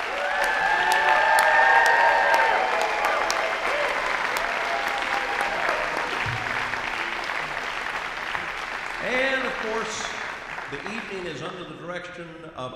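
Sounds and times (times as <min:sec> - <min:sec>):
cheers: 0:00.0 - 0:10.0
overlapping voices: 0:00.0 - 0:11.4
audience applause for student musicians: 0:00.0 - 0:11.6
speech: 0:11.1 - 0:12.7.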